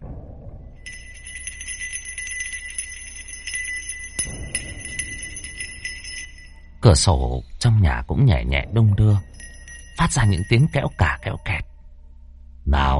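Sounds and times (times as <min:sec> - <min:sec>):
wind chime jingling: 0:00.8 - 0:07.6, 0:08.8 - 0:11.8
speech: 0:06.9 - 0:09.3, 0:10.0 - 0:11.7, 0:12.7 - 0:12.9.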